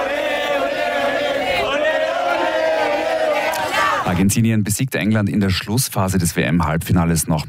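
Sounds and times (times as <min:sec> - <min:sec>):
large crowd of football fans cheering and chanting: 0:00.0 - 0:04.3
speech: 0:04.1 - 0:07.4.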